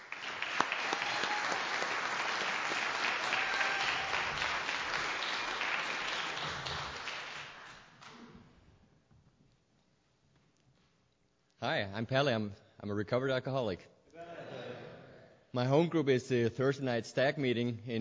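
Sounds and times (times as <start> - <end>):
audience applause at a recovery group meeting welcoming a speaker: 0.0 - 8.2
speech: 11.7 - 13.9, 15.6 - 17.9.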